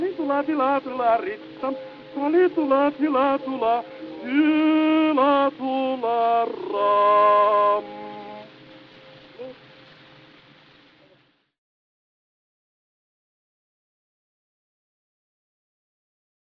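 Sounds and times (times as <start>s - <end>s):
gramophone playing: 0.0s - 10.0s.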